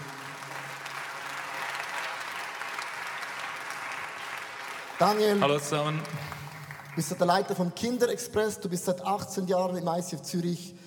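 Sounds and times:
audience applause: 0.0 - 7.5
speech: 5.0 - 6.4, 7.0 - 10.8.

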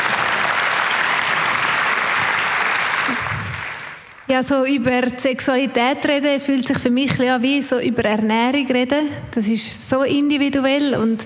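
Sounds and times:
audience applause: 0.0 - 4.2
speech: 4.3 - 11.2.

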